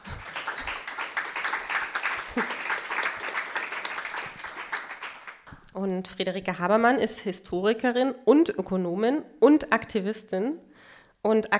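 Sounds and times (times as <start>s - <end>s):
audience applause: 0.0s - 5.5s
speech: 5.8s - 11.5s.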